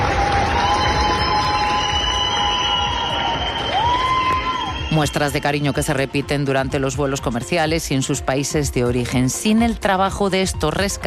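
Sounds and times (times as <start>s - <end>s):
crowd applauding and cheering at airport: 0.0s - 7.4s
faint whistle-like tone: 0.7s - 5.8s
speech: 5.0s - 11.0s.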